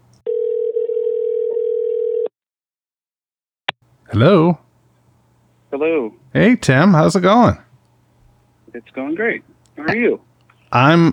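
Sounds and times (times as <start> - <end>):
telephone dial tone: 0.3 - 2.3
speech: 4.1 - 4.6, 5.7 - 7.6, 8.7 - 11.1.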